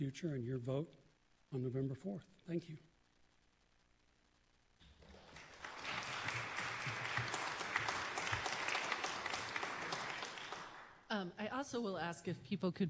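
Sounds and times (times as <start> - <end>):
speech: 0.0 - 2.9, 11.1 - 12.8
audience applause: 4.8 - 11.0.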